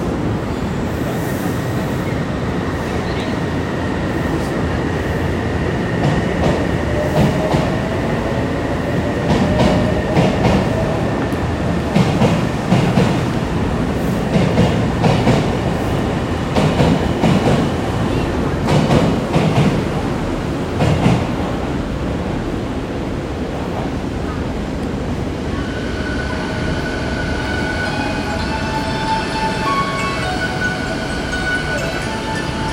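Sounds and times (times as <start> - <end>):
train approaching Sagami-Ono station west: 0.0 - 32.7.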